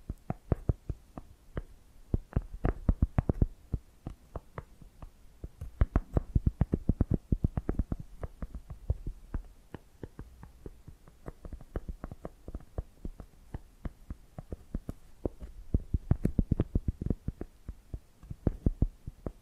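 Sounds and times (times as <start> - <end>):
faint low hum: 0.0 - 19.4
tapping and scratching: 0.1 - 19.4.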